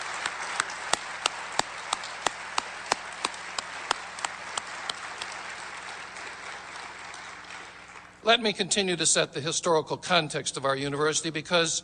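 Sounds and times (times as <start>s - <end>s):
audience round of applause: 0.0s - 8.2s
speech: 8.3s - 11.8s.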